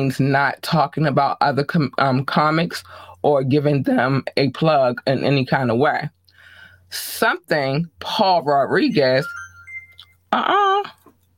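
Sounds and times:
speech: 0.0s - 6.2s, 6.9s - 9.4s, 10.3s - 11.0s
phone ringing: 8.9s - 10.3s.

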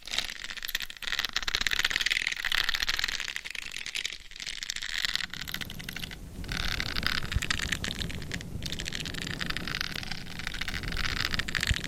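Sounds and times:
intense scratching on a binaural head mic: 0.0s - 11.8s
low rumble: 5.2s - 11.8s.

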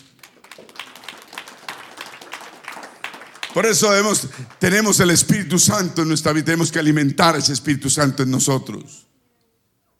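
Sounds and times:
applause: 0.0s - 5.2s
speech: 3.6s - 9.1s.

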